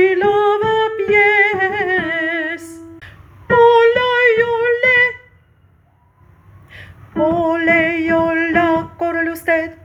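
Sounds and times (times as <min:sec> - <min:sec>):
pasacalle music for contraltos and basses: 0:00.0 - 0:05.0, 0:07.2 - 0:09.6.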